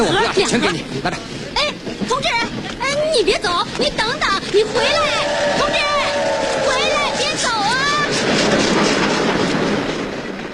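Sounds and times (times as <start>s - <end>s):
speech: 0.0s - 2.4s, 3.1s - 5.9s
train departing: 4.4s - 10.5s.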